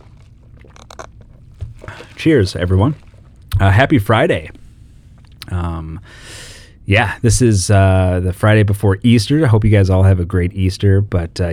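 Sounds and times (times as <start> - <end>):
slurping soda from a large cup: 0.0 - 3.6
low steady rumble: 0.0 - 11.5
speech: 1.8 - 3.0, 3.6 - 4.6, 5.5 - 11.5.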